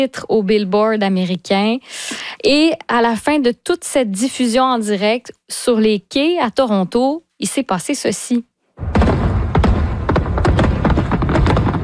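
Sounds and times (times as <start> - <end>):
speech: 0.0 - 9.0
fireworks on the Toronto waterfront: 8.8 - 11.8.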